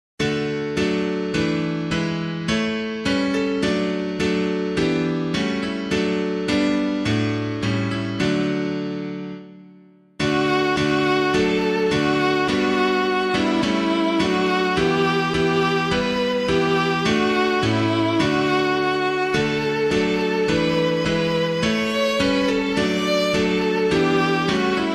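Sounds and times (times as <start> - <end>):
piano piece: 0.2 - 24.9.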